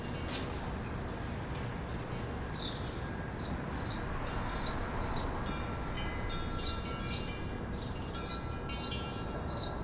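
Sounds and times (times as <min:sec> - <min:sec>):
wind chimes on a quiet street: 0:00.0 - 0:00.8, 0:04.1 - 0:09.8
distant traffic: 0:00.0 - 0:09.8.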